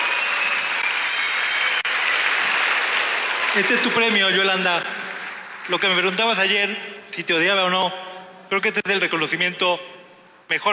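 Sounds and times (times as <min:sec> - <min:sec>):
audience applause: 0:00.0 - 0:06.4
speech: 0:03.6 - 0:05.0, 0:05.7 - 0:09.9, 0:10.5 - 0:10.7.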